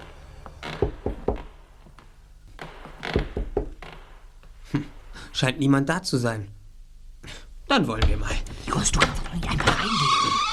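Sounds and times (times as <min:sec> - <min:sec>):
cautious knocking on a salon door: 0:00.7 - 0:01.6, 0:02.7 - 0:04.2
speech: 0:04.7 - 0:06.6, 0:07.7 - 0:10.5.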